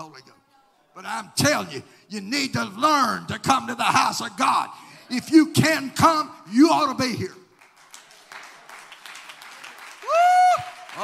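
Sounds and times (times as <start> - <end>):
speech: 0.0 - 0.4, 1.0 - 7.4
audience hand claps: 7.5 - 11.0.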